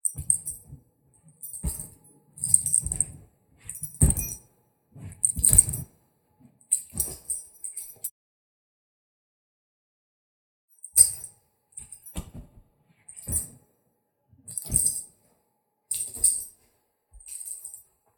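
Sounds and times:
chain: 0.0s - 0.7s, 1.3s - 4.5s, 5.2s - 5.9s, 6.7s - 8.1s, 14.5s - 15.1s, 15.9s - 16.6s, 17.2s - 17.9s.

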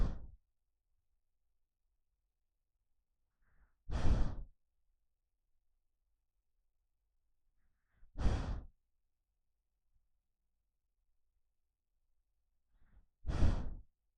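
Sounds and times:
dog breathing while sleeping: 0.0s - 0.4s, 3.5s - 4.5s, 8.0s - 8.7s, 13.3s - 13.9s.

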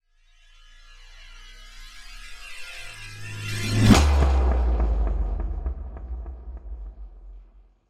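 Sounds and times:
trailer hit: 3.1s - 7.8s.

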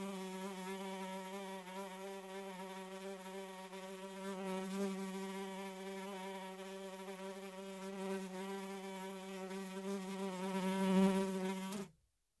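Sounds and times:
fly droning: 0.0s - 11.9s.

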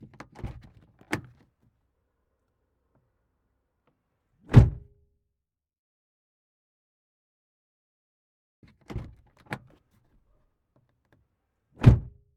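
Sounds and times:
car door opening and closing heard from the interior: 0.0s - 1.4s.

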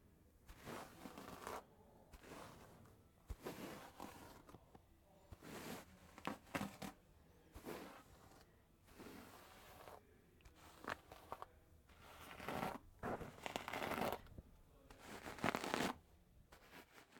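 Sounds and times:
hair being combed: 0.5s - 4.6s, 7.6s - 14.3s, 15.0s - 17.1s.

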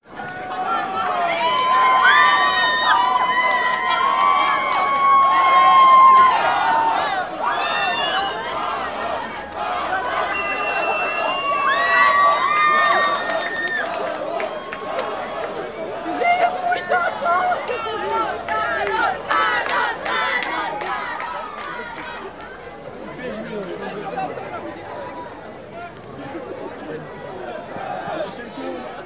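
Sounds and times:
fans applauding: 0.5s - 22.8s.

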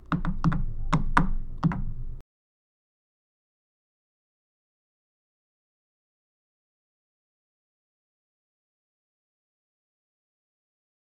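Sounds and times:
shoes tapping: 0.0s - 2.2s.

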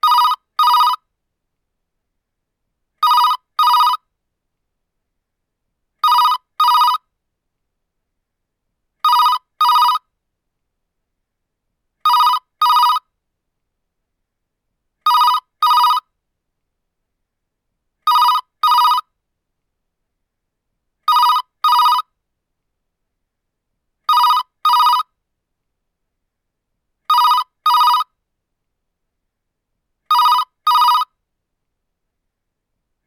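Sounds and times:
phone ringing: 0.0s - 1.0s, 3.0s - 4.0s, 6.0s - 7.0s, 9.0s - 10.0s, 12.1s - 13.0s, 15.1s - 16.0s, 18.1s - 19.0s, 21.1s - 22.0s, 24.1s - 25.1s, 27.1s - 28.1s, 30.1s - 31.1s.

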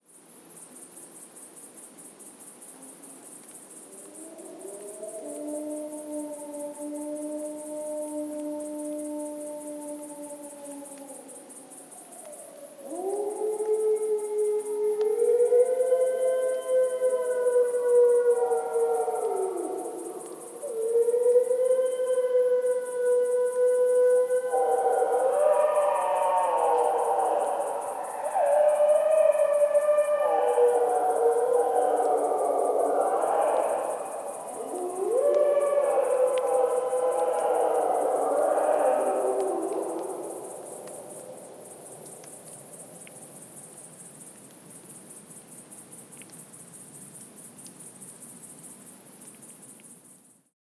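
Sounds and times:
wolves howling: 3.9s - 42.3s.

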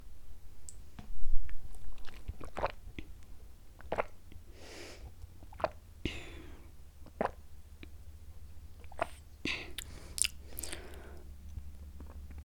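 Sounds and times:
person drinking water: 1.4s - 7.4s, 8.8s - 12.4s.

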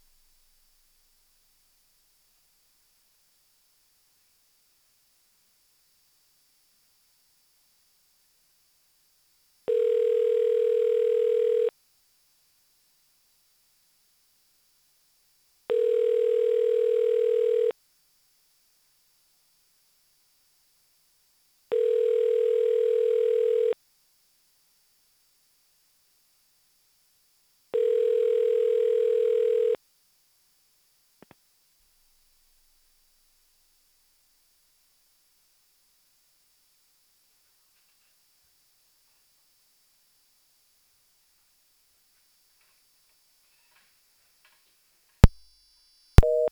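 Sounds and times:
phone ringing tone: 9.7s - 11.7s, 15.7s - 17.7s, 21.7s - 23.8s, 27.8s - 29.8s, 46.2s - 46.5s.

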